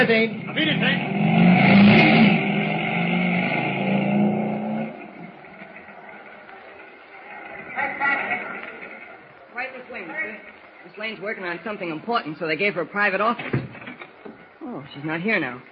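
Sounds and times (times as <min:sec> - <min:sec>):
speech: 0:00.0 - 0:01.4, 0:11.0 - 0:13.7, 0:14.8 - 0:15.7
motorcycle engine starting and revving: 0:00.0 - 0:09.2.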